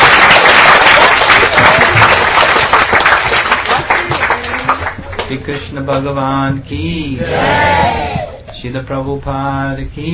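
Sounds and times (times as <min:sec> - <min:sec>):
audience applause: 0:00.0 - 0:05.4
speech: 0:05.3 - 0:10.1.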